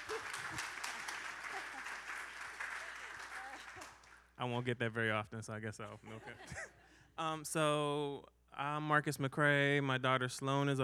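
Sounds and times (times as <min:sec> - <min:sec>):
audience clapping: 0:00.0 - 0:04.3
speech: 0:04.4 - 0:10.8.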